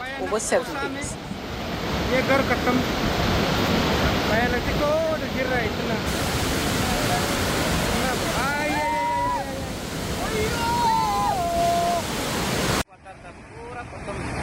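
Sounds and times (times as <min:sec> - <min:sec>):
floodwater rushing through homes and fields: 0:00.0 - 0:14.4
speech: 0:00.2 - 0:01.3, 0:02.1 - 0:03.2, 0:04.3 - 0:06.2.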